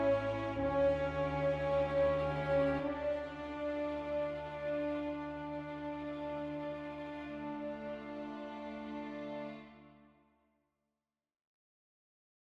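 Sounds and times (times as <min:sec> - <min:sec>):
musical variation: 0:00.0 - 0:09.8.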